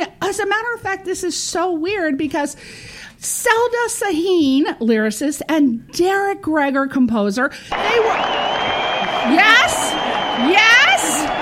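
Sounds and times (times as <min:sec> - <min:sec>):
speech: 0:00.3 - 0:10.8
canned applause track: 0:07.7 - 0:11.4
whoops of cheering: 0:07.7 - 0:11.4.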